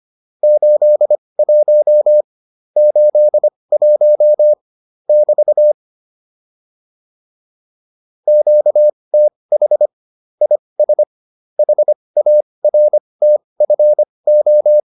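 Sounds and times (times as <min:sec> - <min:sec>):
morse code QSO practice: 0:00.5 - 0:02.3, 0:02.8 - 0:05.8, 0:08.3 - 0:11.1, 0:11.6 - 0:14.9.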